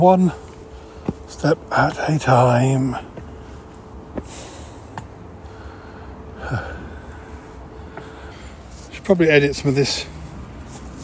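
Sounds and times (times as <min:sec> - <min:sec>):
speech: 0:00.0 - 0:00.4, 0:01.3 - 0:03.1, 0:09.1 - 0:10.1
heavy breathing, puffing and panting: 0:00.4 - 0:01.3, 0:02.9 - 0:08.9.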